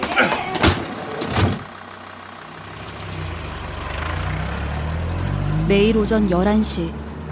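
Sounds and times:
van door slamming: 0:00.0 - 0:01.7
van engine turning over and rumbling: 0:00.0 - 0:07.3
speech: 0:05.7 - 0:07.0.

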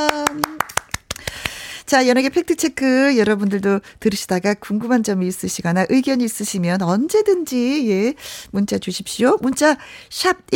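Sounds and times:
applause of crisp hand claps: 0:00.0 - 0:01.6
speech: 0:01.9 - 0:10.5.

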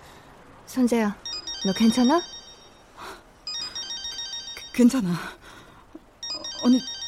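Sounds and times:
speech: 0:00.7 - 0:02.3, 0:04.8 - 0:05.4, 0:06.6 - 0:07.0
phone ringtone: 0:01.2 - 0:05.0, 0:06.2 - 0:07.0.

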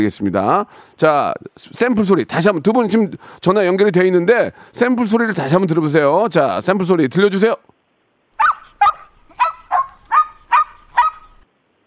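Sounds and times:
speech: 0:00.0 - 0:07.8
small dog barking: 0:08.4 - 0:11.4.

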